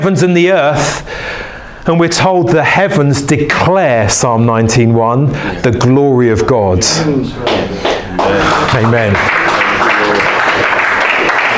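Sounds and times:
speech: 0.0 - 9.4
audience applauding: 7.4 - 11.5.

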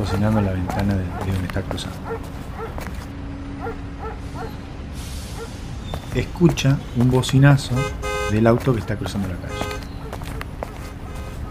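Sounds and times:
dog barking: 0.0 - 3.0, 3.6 - 4.6, 8.6 - 11.4
speech: 0.1 - 2.4, 6.1 - 9.7.

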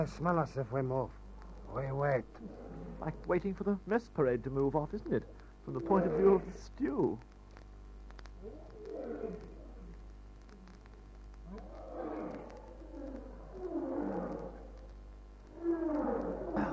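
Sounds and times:
speech: 0.0 - 7.3
lions roaring: 1.4 - 3.6, 4.9 - 6.6, 8.4 - 10.0, 11.5 - 14.9, 15.5 - 16.7.

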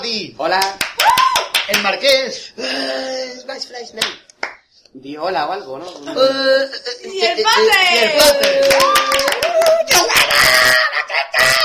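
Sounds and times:
speech: 0.1 - 4.3, 4.9 - 11.6
laughter: 8.1 - 11.6
applause: 8.4 - 10.3.

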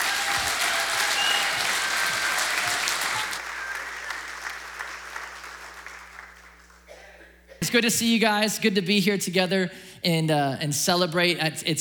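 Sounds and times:
church audience applause welcoming a pastor: 0.0 - 6.9
speech: 7.6 - 11.7.

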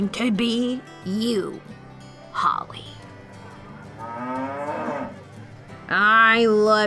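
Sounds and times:
speech: 0.0 - 1.8, 2.4 - 3.0, 5.9 - 6.8
cow mooing: 3.2 - 5.2.

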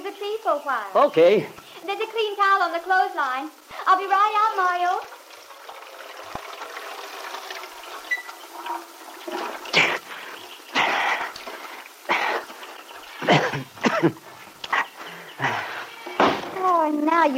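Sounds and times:
speech: 0.2 - 5.2, 13.6 - 14.3, 16.8 - 17.3
water splashing and pouring as a person washes their head outdoors: 3.7 - 16.8.

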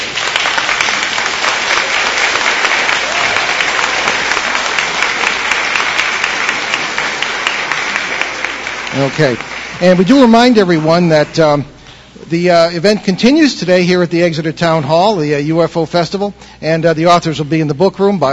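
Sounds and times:
round of applause: 0.0 - 11.4
speech: 9.0 - 18.3.

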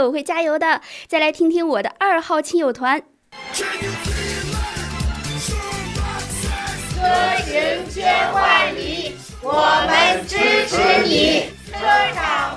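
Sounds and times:
speech: 0.0 - 4.2, 7.0 - 12.5
colleagues from a vehicle depot chanting and cheering: 3.4 - 12.5.

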